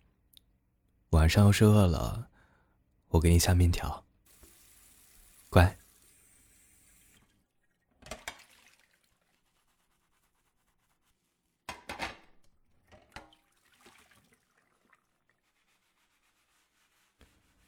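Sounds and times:
speech: 1.2s - 2.3s, 3.1s - 4.1s, 5.5s - 5.8s
tap water running at a sink: 4.3s - 9.6s, 12.9s - 15.7s
dishes being scrubbed at a sink: 8.3s - 11.8s, 15.1s - 17.6s.

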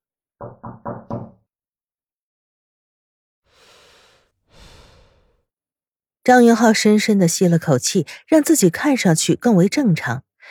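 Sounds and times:
knocking on office door: 0.4s - 1.4s
speech: 6.3s - 10.4s.

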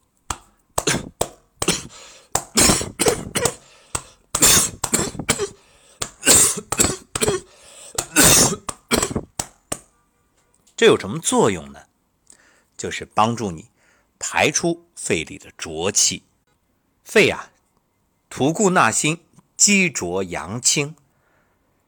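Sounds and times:
cupped left hand patting right chest: 0.3s - 9.9s
person deliberately coughing: 0.8s - 9.4s
speech: 10.8s - 11.9s, 12.8s - 16.3s, 17.0s - 17.5s, 18.3s - 21.0s.

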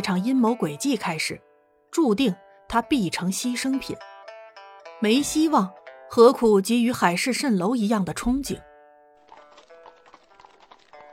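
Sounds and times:
speech: 0.0s - 4.1s, 5.0s - 8.7s
hooves of a horse-drawn carriage clip-clopping: 9.2s - 11.1s.

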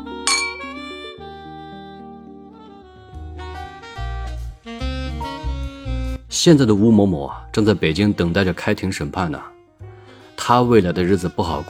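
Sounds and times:
melodic music track with a deep bass line: 0.0s - 1.5s, 2.9s - 8.5s
glasses clinking in a toast: 0.3s - 0.7s
speech: 6.3s - 9.6s, 10.5s - 11.6s.

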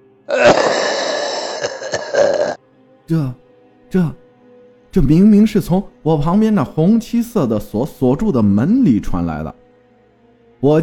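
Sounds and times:
cough: 0.3s - 2.6s
speech: 3.1s - 4.2s, 4.9s - 9.6s, 10.6s - 10.8s.

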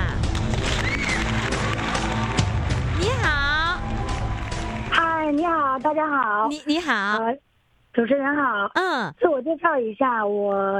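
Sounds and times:
audience applause: 0.3s - 6.2s
speech: 5.9s - 10.7s.

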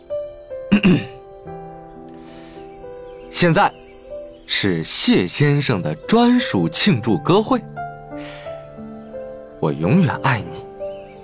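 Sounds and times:
throat clearing: 0.7s - 1.2s
speech: 0.8s - 1.2s, 3.4s - 3.8s, 4.5s - 8.4s, 9.6s - 10.7s.

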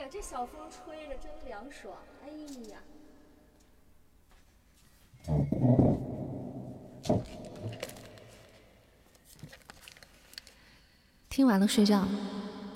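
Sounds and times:
speech: 0.1s - 3.0s, 5.2s - 5.8s, 11.4s - 12.7s
chair being dragged across floor: 5.2s - 6.3s.

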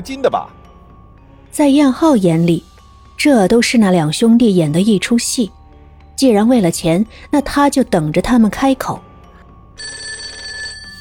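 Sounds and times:
speech: 0.0s - 0.6s, 1.5s - 5.6s, 6.2s - 9.1s
telephone ringing: 9.8s - 10.9s.

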